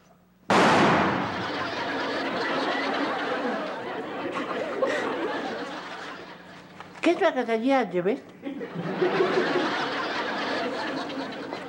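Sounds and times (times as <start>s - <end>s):
rifle shot: 0.5s - 1.5s
dense wash of noise: 0.5s - 3.3s
laughter: 1.1s - 6.8s, 8.4s - 11.6s
speech: 7.1s - 10.0s.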